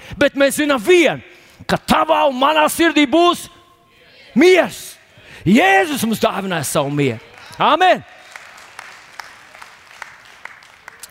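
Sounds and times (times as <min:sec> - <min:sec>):
speech: 0:00.1 - 0:03.5, 0:04.4 - 0:08.1
thin scattered applause from a small crowd: 0:06.9 - 0:11.0.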